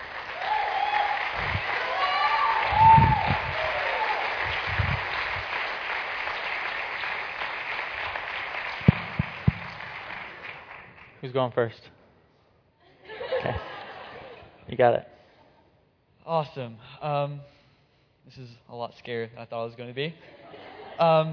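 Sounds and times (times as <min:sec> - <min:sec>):
audience applause: 0:00.0 - 0:11.2
faint voices and cheers: 0:00.4 - 0:05.0
speech: 0:11.3 - 0:12.0, 0:13.4 - 0:13.7, 0:14.7 - 0:15.1, 0:16.3 - 0:17.5, 0:18.3 - 0:20.4, 0:21.0 - 0:21.3
laughter: 0:12.8 - 0:14.6, 0:20.2 - 0:21.3.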